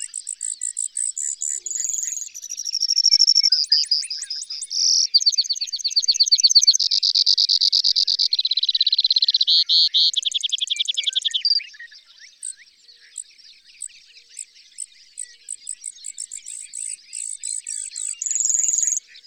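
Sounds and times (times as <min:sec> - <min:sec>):
bird song of high chirps, twittering and buzzy trills: 0:00.0 - 0:19.2.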